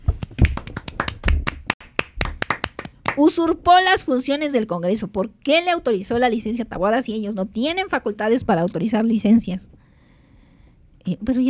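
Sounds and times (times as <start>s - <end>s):
scattered applause from a small group: 0.0s - 3.3s
speech: 3.2s - 9.8s, 11.1s - 11.4s.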